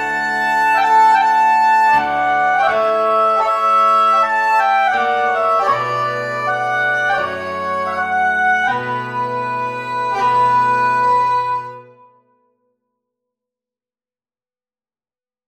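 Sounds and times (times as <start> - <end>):
national anthem: 0.0 - 11.9.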